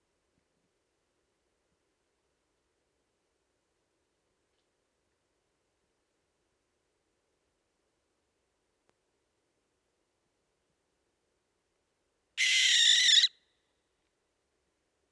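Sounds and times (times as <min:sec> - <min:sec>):
barn owl Tyto alba calling: 0:12.4 - 0:13.4.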